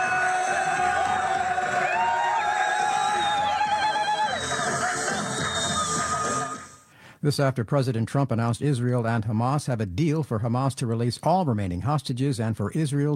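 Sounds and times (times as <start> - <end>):
people ululating: 0.0 - 6.7
large crowd cheering in celebration: 0.0 - 6.8
speech: 7.2 - 13.1.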